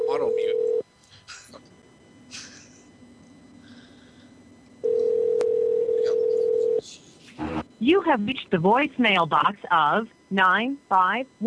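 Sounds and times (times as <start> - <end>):
outgoing telephone call ringback tone: 0.0 - 0.8, 4.8 - 6.8
speech: 7.8 - 11.4.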